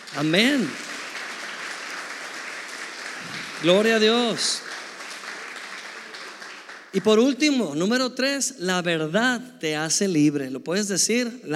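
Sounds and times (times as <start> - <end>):
audience applause: 0.0 - 7.2
speech: 0.2 - 0.9, 3.6 - 4.7, 6.9 - 11.5.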